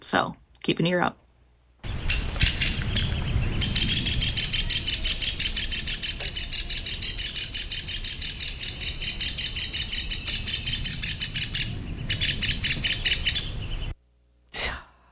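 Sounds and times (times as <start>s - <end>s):
speech: 0.0s - 1.2s
downy woodpecker alarm call: 1.8s - 13.9s.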